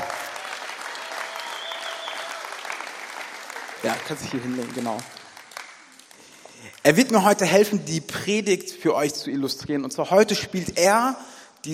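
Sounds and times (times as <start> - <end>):
audience applause: 0.0 - 6.8
speech: 3.8 - 5.2, 6.6 - 11.7.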